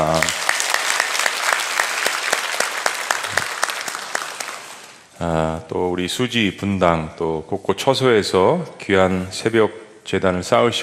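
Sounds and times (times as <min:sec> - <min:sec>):
audience applause: 0:00.0 - 0:05.1
speech: 0:05.2 - 0:10.8.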